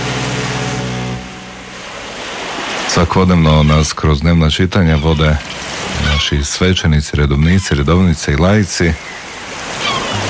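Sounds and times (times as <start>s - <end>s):
sea waves: 0.0s - 10.2s
speech: 2.9s - 9.2s.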